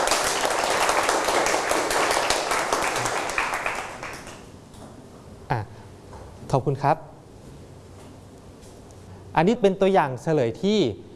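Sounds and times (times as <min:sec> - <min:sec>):
students clapping hands: 0:00.0 - 0:04.5
speech: 0:06.5 - 0:07.1, 0:09.4 - 0:11.1.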